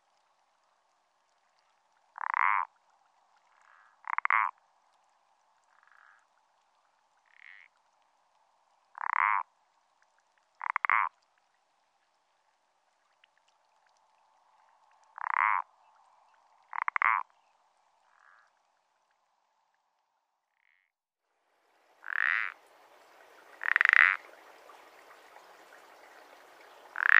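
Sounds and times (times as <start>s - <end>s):
common parsley frog croaking: 2.2s - 2.7s, 3.5s - 4.6s, 5.7s - 6.3s, 7.2s - 7.7s, 8.9s - 9.5s, 10.6s - 11.2s, 15.1s - 15.8s, 16.7s - 17.4s, 18.0s - 18.6s, 22.0s - 22.6s, 23.5s - 24.4s, 26.9s - 27.1s.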